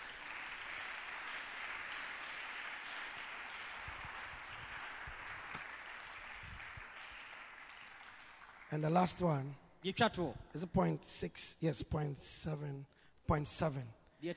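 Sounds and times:
audience clapping: 0:00.0 - 0:09.6
speech: 0:08.7 - 0:14.3.

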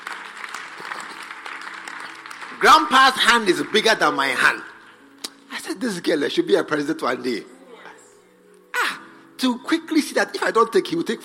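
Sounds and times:
audience clapping: 0:00.0 - 0:04.7
speech: 0:02.6 - 0:04.7, 0:05.7 - 0:07.5, 0:09.4 - 0:11.2.

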